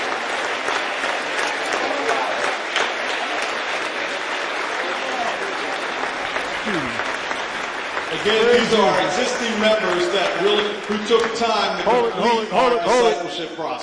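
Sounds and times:
audience applause: 0.0s - 13.8s
speech: 8.2s - 13.8s.

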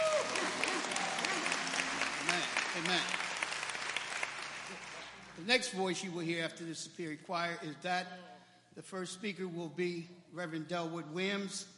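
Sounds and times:
audience applauding the choir: 0.0s - 5.4s
speech: 2.8s - 3.2s, 5.4s - 11.7s.

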